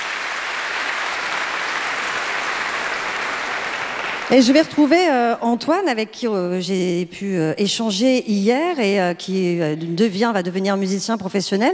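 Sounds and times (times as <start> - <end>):
audience applause: 0.0 - 4.7
speech: 4.3 - 11.7.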